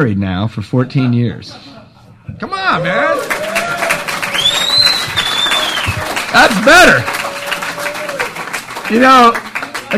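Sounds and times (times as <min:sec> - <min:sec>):
speech: 0:00.0 - 0:03.6, 0:06.3 - 0:07.2, 0:08.9 - 0:09.9
audience applause and cheering for a comedian during a stand-up set: 0:02.8 - 0:09.9.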